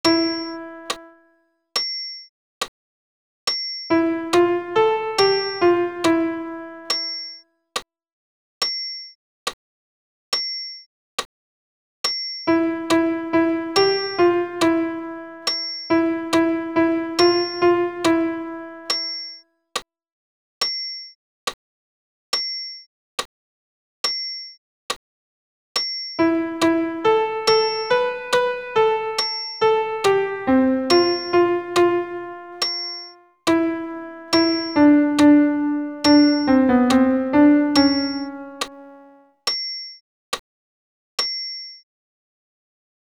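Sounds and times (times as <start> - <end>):
alto voice with piano: 3.9 - 6.9, 12.5 - 18.9, 26.2 - 32.6, 33.5 - 39.2.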